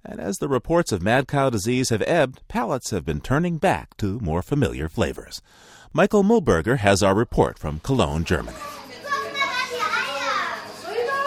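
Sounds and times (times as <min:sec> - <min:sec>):
speech: 0:00.3 - 0:08.8
preschool children chattering in a room: 0:08.0 - 0:11.2
children squealing: 0:08.6 - 0:11.2.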